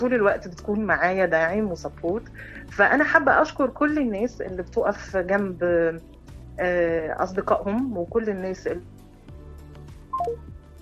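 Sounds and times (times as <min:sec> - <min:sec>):
speech: 0:00.0 - 0:08.9, 0:10.2 - 0:10.5
telephone tones of a call cutting off: 0:10.2 - 0:10.4.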